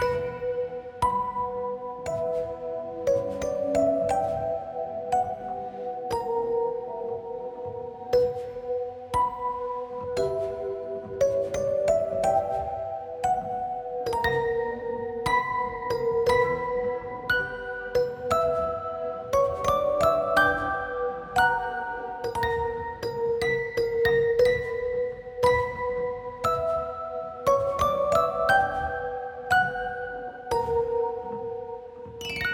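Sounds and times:
music box: 0:00.0 - 0:32.5.

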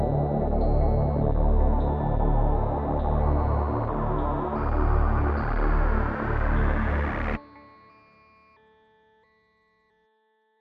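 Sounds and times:
low pad in D: 0:00.0 - 0:07.4.

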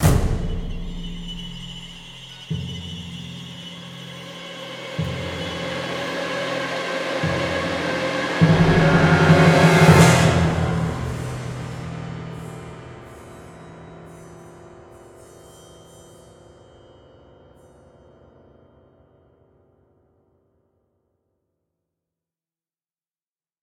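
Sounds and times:
cinematic music: 0:00.0 - 0:14.6.

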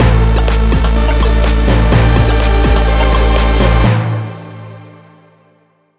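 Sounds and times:
game start sound: 0:00.0 - 0:04.0.

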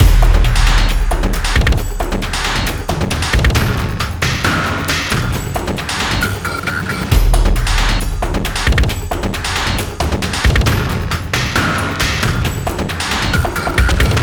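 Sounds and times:
small desert fight music: 0:00.0 - 0:14.2.

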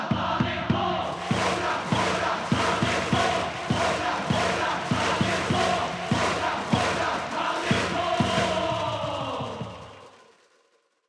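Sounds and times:
event music: 0:00.1 - 0:10.5.

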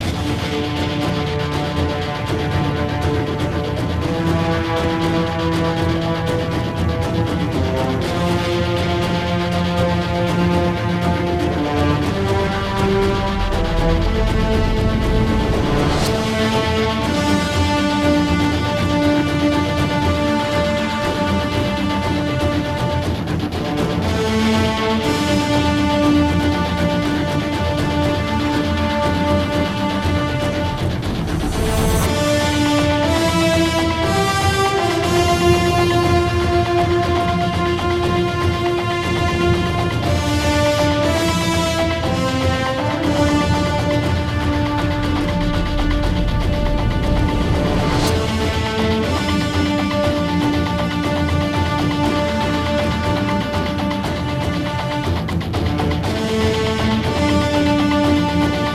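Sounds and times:
music: 0:00.0 - 0:58.7.

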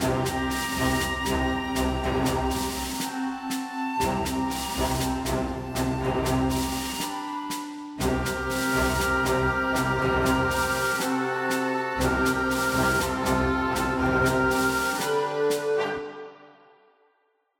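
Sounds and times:
soft military snare drum: 0:00.0 - 0:16.0.

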